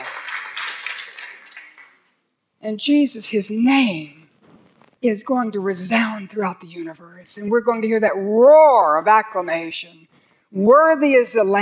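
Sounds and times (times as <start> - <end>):
audience clapping: 0.0 - 2.2
speech: 2.6 - 4.2, 5.0 - 11.6.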